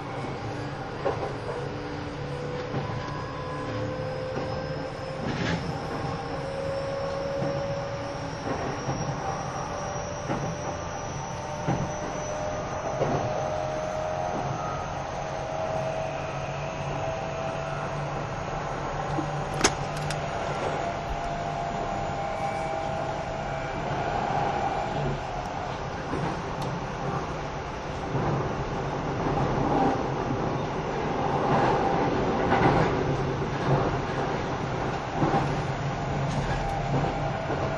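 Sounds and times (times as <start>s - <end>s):
thin high whine: 0.0s - 27.2s
Keio 5000 series train running: 0.0s - 37.7s.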